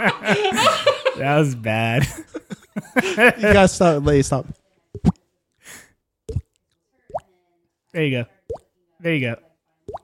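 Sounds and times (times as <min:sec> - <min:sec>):
speech: 0:00.0 - 0:02.4, 0:03.0 - 0:04.6, 0:08.0 - 0:08.4, 0:09.0 - 0:10.0
laughter: 0:00.0 - 0:03.8
voice imitating a leaky faucet dripping with mouth plops: 0:06.3 - 0:07.2.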